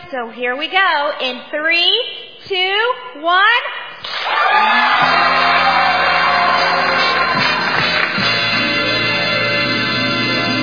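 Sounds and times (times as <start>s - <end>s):
speech: 0.1s - 5.4s
audience applause for a quiz game show: 4.1s - 10.5s
audience whooping and shouting: 4.2s - 9.5s.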